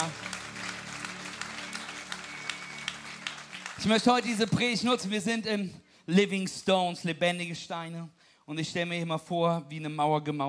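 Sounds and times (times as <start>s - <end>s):
audience applause: 0.0s - 5.1s
speech: 3.8s - 10.4s.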